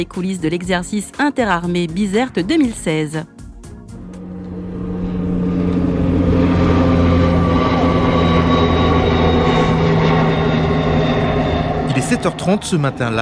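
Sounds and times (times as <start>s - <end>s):
speech: 0.0s - 3.3s, 12.1s - 13.2s
CASA military transport plane flying at 2,500 metres over a clearing: 3.6s - 13.2s.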